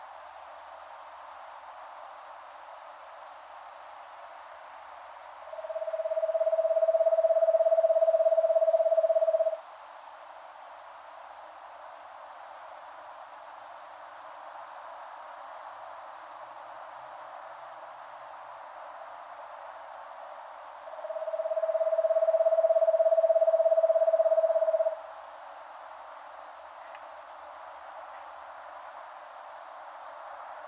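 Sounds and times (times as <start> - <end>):
Eastern Screech Owl Megascops asio calling: 5.5 - 9.6, 20.9 - 25.0.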